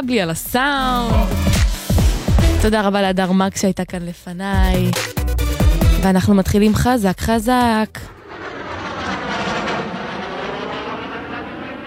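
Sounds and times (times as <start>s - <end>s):
speech: 0.0s - 1.6s, 2.6s - 8.2s
airplane at the start of a song: 7.9s - 11.8s.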